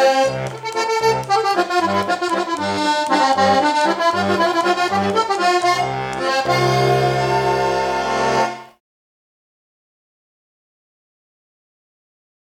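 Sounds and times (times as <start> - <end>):
bourree waltz music: 0.0 - 8.8.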